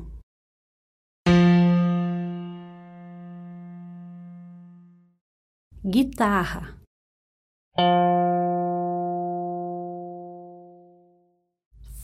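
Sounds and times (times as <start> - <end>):
musical note F: 1.3 - 5.1, 7.8 - 11.1.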